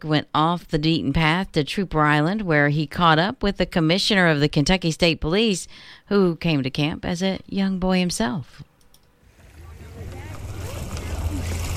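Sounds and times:
speech: 0.0s - 8.7s
lake water lapping against the shore of Trooper Island on Dale Hollow Lake: 9.2s - 11.7s.

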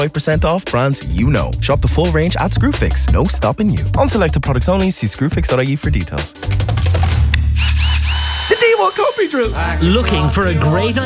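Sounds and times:
speech: 0.0s - 7.2s, 8.8s - 11.0s
Makita multi-tool running with a low buzzing drone: 7.4s - 9.5s.

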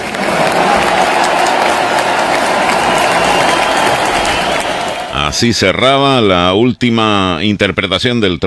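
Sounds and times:
theatre audience ovation and applause: 0.0s - 5.4s
speech: 5.4s - 8.4s.

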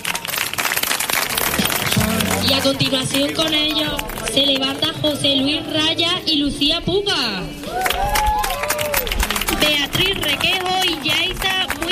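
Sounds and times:
audience applause: 0.0s - 4.3s, 7.7s - 11.9s
speech: 2.5s - 8.5s.

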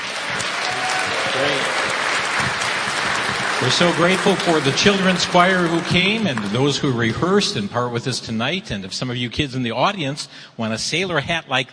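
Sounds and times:
audience applauding at a church event: 0.0s - 7.1s
speech: 3.6s - 11.7s.

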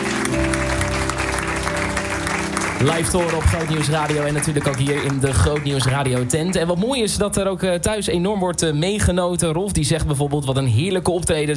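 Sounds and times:
crowd applause: 0.0s - 6.9s
speech: 2.8s - 11.5s.

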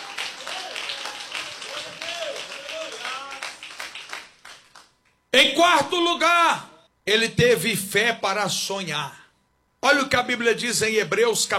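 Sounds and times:
crowd clapping: 0.0s - 5.2s
speech: 5.4s - 9.2s, 9.8s - 11.5s.

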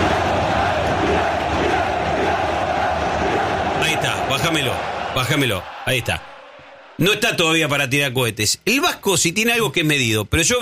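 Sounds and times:
football fans chanting in stadium: 0.0s - 7.3s
speech: 4.4s - 6.3s, 7.0s - 10.6s.

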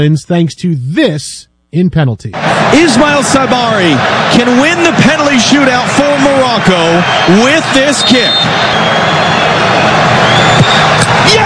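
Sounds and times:
speech: 0.0s - 9.5s
stadium crowd cheering: 2.4s - 11.4s.

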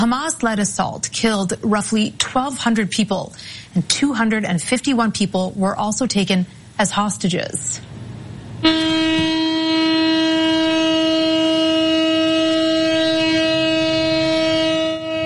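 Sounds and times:
speech: 0.0s - 7.9s, 8.6s - 9.8s
memorial air-raid siren steady tone in Tel Aviv: 8.6s - 15.2s.

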